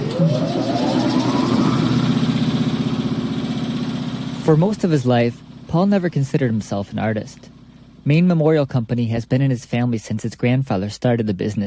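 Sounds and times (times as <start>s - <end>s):
sandblasting machine switching on: 0.0s - 4.7s
speech: 0.2s - 0.6s, 4.5s - 11.6s.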